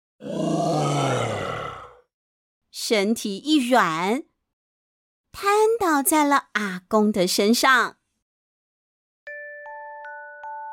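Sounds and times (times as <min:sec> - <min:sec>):
tiger monster's mournful cry: 0:00.2 - 0:02.0
speech: 0:02.9 - 0:04.3, 0:05.4 - 0:08.0.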